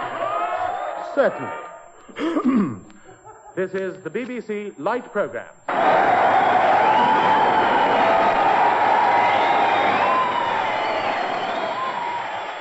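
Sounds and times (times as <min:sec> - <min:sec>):
speech: 0:01.2 - 0:02.9, 0:03.6 - 0:06.1
audience applause: 0:05.7 - 0:12.6.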